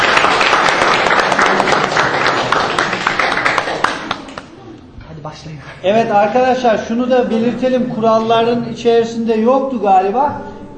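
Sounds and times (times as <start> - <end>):
audience applause for a sponsor at a quiz event: 0.0 - 4.6
speech: 5.8 - 10.5.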